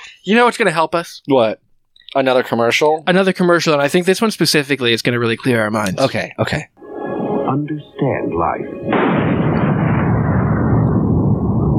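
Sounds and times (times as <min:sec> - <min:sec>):
speech: 0:00.2 - 0:06.7, 0:07.5 - 0:09.4
volcano eruption sound effect in a parody commercial: 0:08.9 - 0:11.7.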